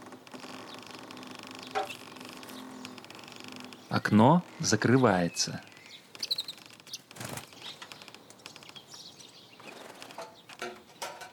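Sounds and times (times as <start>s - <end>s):
sparrow wings fluttering: 0.0s - 4.0s, 5.7s - 10.6s
two sparrows chirping while pecking at crumbs: 0.0s - 11.3s
speech: 4.0s - 5.7s.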